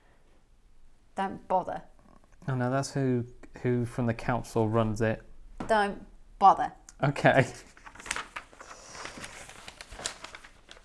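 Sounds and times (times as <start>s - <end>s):
speech: 1.2s - 1.9s, 2.5s - 7.7s
paper rustling as foley: 7.2s - 10.8s.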